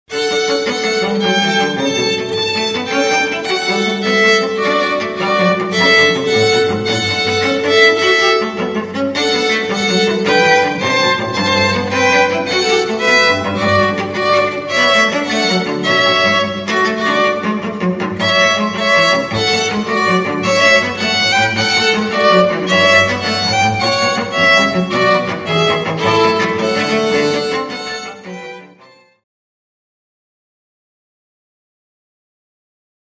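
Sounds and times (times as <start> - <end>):
string quartet playing chamber music: 0.1 - 29.2.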